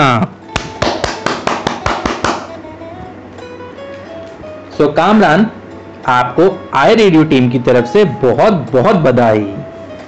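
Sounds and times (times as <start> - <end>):
speech: 0.0 - 0.4, 4.8 - 9.6
loud applause of sharp claps: 0.5 - 2.6.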